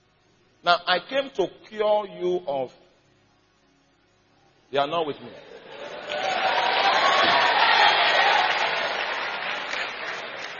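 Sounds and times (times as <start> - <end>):
speech: 0.6 - 2.8, 4.7 - 6.2
audience applause: 5.6 - 10.5.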